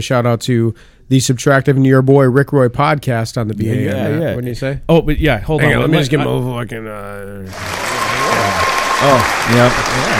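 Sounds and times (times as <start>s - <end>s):
speech: 0.0s - 10.1s
audience applause: 7.5s - 10.1s.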